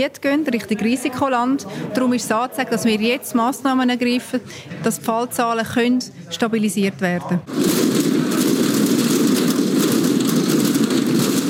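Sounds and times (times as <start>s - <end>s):
speech: 0.0s - 7.8s
batons hammering on riot shields: 7.5s - 11.4s.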